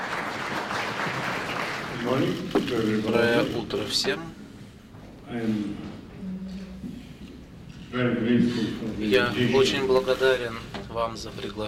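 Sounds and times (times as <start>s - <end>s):
audience applause: 0.0s - 2.6s
speech: 2.1s - 4.4s, 5.3s - 6.0s, 7.9s - 11.6s.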